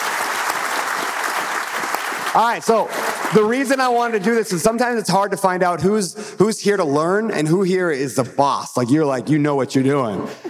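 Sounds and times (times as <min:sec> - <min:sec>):
audience applause: 0:00.0 - 0:04.6
speech: 0:02.3 - 0:10.4.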